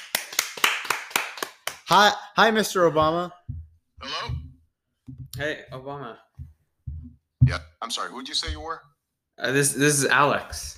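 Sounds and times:
applause: 0:00.0 - 0:01.9
speech: 0:01.9 - 0:04.2, 0:05.4 - 0:06.3, 0:07.5 - 0:10.7.

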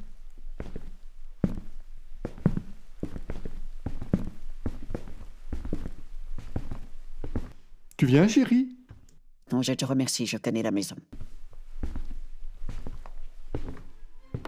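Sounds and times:
footsteps climbing the stairs of a two-storey house: 0:00.0 - 0:07.6, 0:11.2 - 0:14.4
speech: 0:08.0 - 0:08.7, 0:09.5 - 0:11.2.

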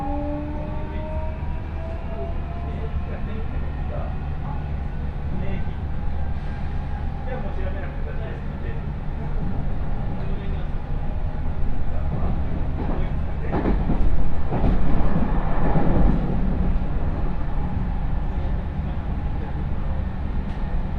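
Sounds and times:
train on the Chuo West Line rumbling: 0:00.0 - 0:20.9.

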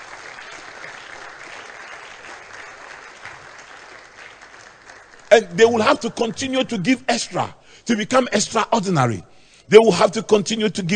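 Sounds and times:
crowd clapping: 0:00.0 - 0:07.0
speech: 0:05.4 - 0:10.9.

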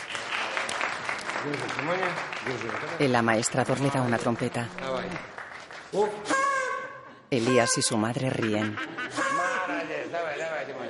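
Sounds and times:
trained bear clapping its paws: 0:00.0 - 0:06.0
speech: 0:01.4 - 0:06.4, 0:07.3 - 0:09.2
laughter: 0:08.3 - 0:10.8.

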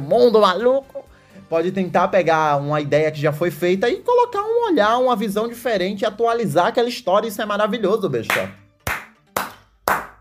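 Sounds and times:
speech: 0:00.1 - 0:08.6
hand clapping: 0:08.3 - 0:10.1.

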